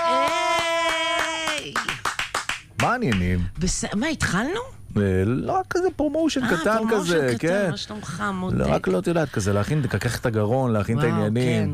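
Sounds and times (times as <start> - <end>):
rhythmic hand claps greeting a singer in a studio: 0.0 - 3.3
speech: 2.9 - 11.7.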